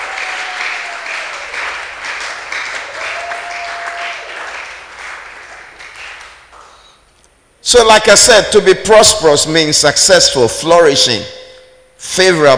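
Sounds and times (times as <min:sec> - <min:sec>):
church congregation applauding: 0:00.0 - 0:07.0
speech: 0:07.7 - 0:11.4, 0:12.0 - 0:12.5.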